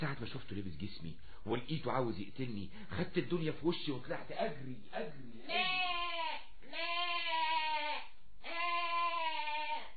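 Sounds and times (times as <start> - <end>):
speech: 0.0 - 6.0
goat bleating: 5.4 - 9.9.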